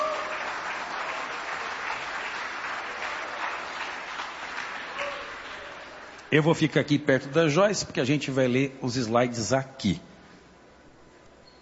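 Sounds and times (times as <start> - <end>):
audience applauding loudly: 0.0 - 6.4
speech: 6.3 - 10.1.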